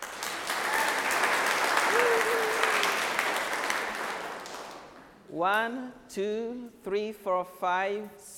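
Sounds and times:
group of children clapping: 0.0 - 5.1
speech: 5.3 - 8.3.

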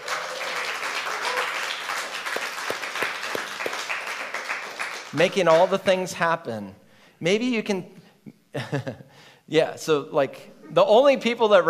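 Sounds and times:
audience applause greeting a sound and media team: 0.0 - 5.7
sharp individual claps: 0.0 - 5.9
speech: 5.1 - 11.6.

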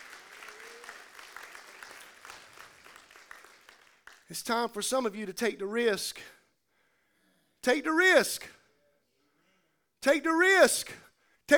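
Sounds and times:
audience hand clapping: 0.0 - 4.3
speech: 4.3 - 6.4, 7.6 - 8.6, 10.0 - 11.5.

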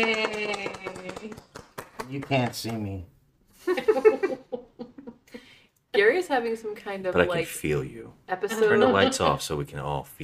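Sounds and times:
speech: 0.0 - 1.5, 2.1 - 3.1, 6.0 - 10.2
applause: 0.0 - 3.0.

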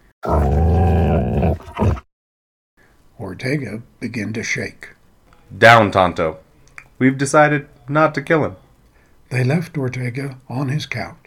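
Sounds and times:
animal growling: 0.2 - 2.0
speech: 3.4 - 6.4, 7.0 - 8.6, 9.3 - 11.2.

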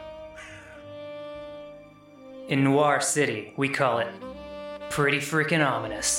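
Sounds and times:
crows cawing: 0.2 - 1.0
speech: 2.5 - 4.3, 4.9 - 6.1.

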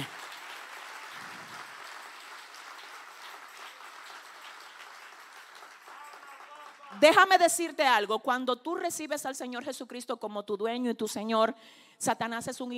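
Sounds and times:
audience applause: 0.0 - 7.0
speech: 7.0 - 12.7.

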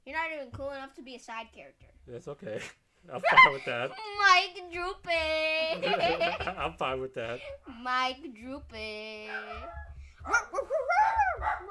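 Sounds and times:
speech: 0.1 - 11.6
laughter: 3.2 - 4.0, 5.7 - 6.8
dog howling: 9.3 - 11.6.

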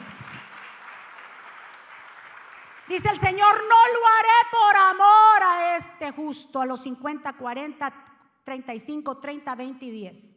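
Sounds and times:
audience applause: 0.0 - 2.9
speech: 2.9 - 10.3.

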